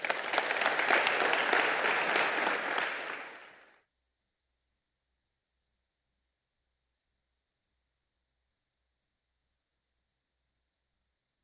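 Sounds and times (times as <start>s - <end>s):
audience applause in a church welcoming a speaker: 0.0s - 3.7s.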